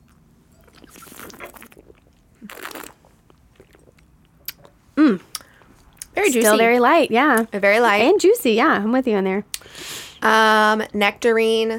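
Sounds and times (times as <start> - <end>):
people sipping and slurping wine at a tasting: 0.6 - 4.1
speech: 5.1 - 5.3, 6.2 - 11.7.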